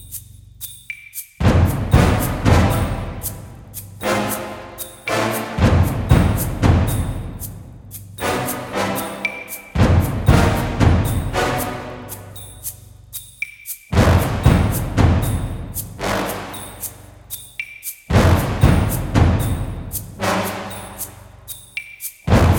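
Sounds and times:
ice caves fight game music: 0:01.4 - 0:07.4, 0:08.2 - 0:12.3, 0:14.0 - 0:16.8, 0:18.1 - 0:21.2, 0:22.3 - 0:22.5.

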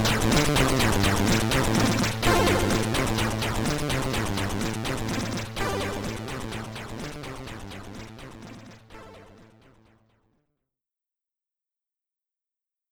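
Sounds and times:
SID chip stereo background music: 0:00.0 - 0:09.6.

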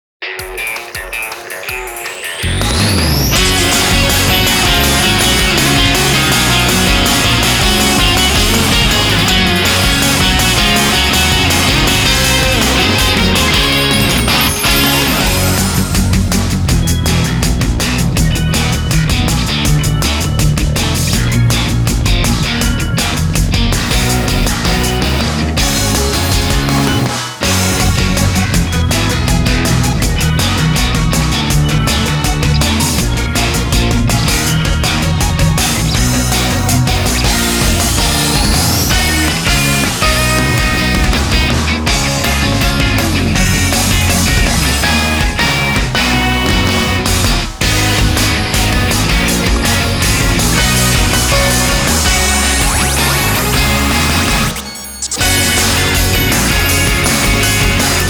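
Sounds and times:
short instrumental music: 0:00.2 - 0:58.0.

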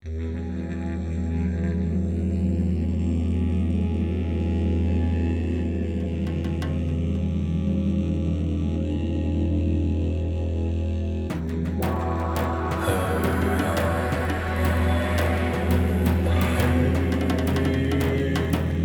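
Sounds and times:
chanting voices: 0:00.8 - 0:18.8.

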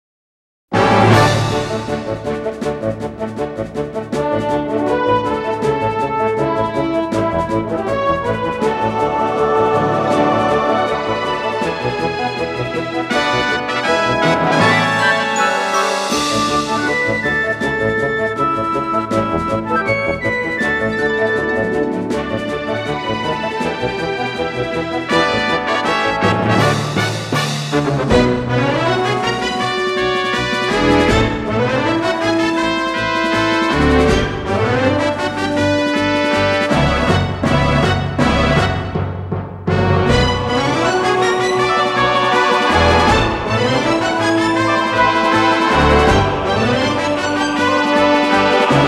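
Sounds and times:
grasslands course game music: 0:00.7 - 0:48.8.

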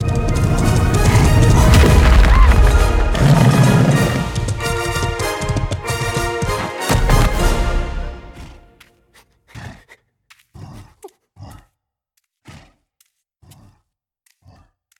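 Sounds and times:
boss music outro: 0:00.0 - 0:08.8.

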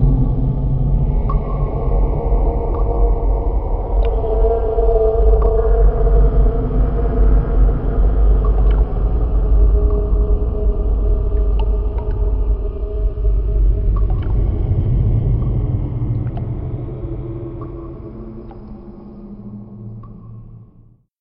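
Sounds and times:
cave ambience: 0:00.0 - 0:21.0.

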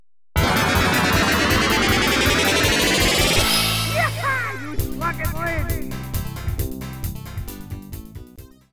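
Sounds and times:
pinball banjo bonus collected jingle: 0:00.4 - 0:06.2.

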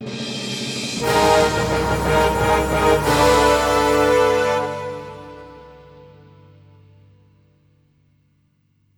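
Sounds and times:
lively victory jingle: 0:01.0 - 0:06.2.

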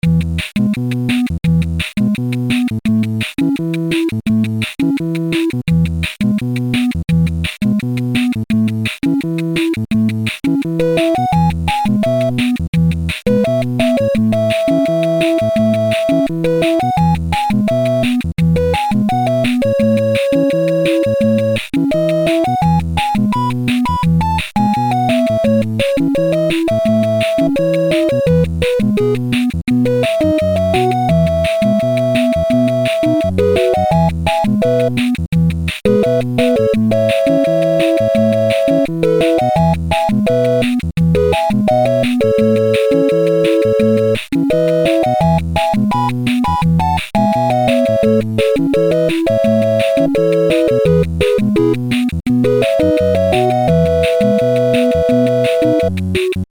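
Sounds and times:
8-bit village game music: 0:00.0 - 0:56.5.

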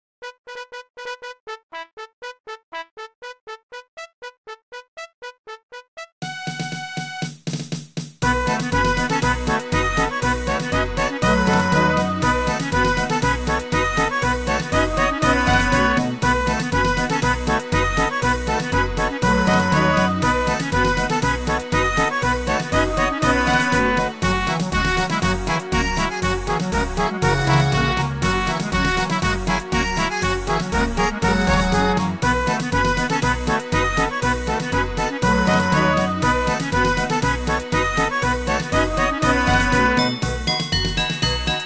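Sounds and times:
fanfare: 0:00.2 - 0:06.6, 0:08.2 - 0:41.5.

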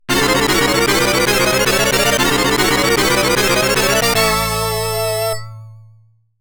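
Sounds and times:
game start sound: 0:00.1 - 0:05.6.

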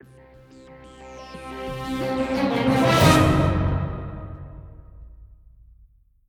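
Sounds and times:
musical stinger: 0:00.0 - 0:05.1.

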